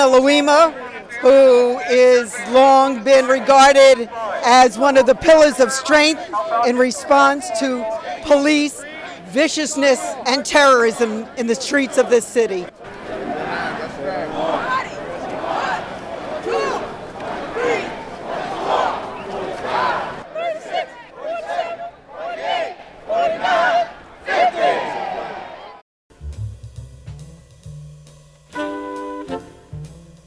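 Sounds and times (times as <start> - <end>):
speech: 0.0 - 12.8
protest march crowd chanting in New York City: 0.0 - 25.8
laughter: 0.2 - 20.2.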